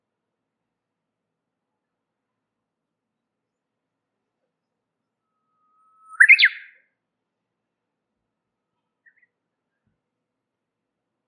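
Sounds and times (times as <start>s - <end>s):
warbler chirping and twittering: 5.7s - 6.7s.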